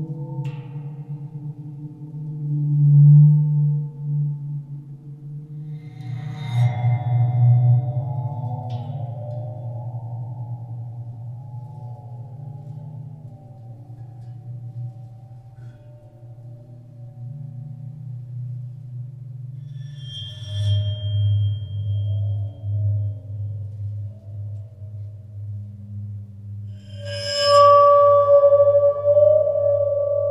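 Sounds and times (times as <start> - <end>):
waterphone played with a bow: 0.0 - 30.2.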